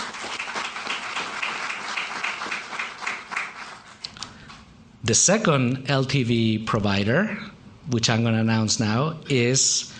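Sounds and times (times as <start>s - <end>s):
audience applause: 0.0s - 4.0s
speech: 5.1s - 9.9s.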